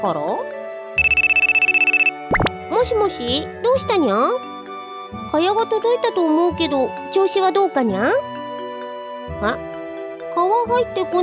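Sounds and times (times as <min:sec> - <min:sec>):
speech: 0:00.0 - 0:00.5, 0:02.8 - 0:04.5, 0:05.2 - 0:08.3, 0:09.3 - 0:09.7, 0:10.4 - 0:11.2
phone ringtone: 0:01.0 - 0:02.6.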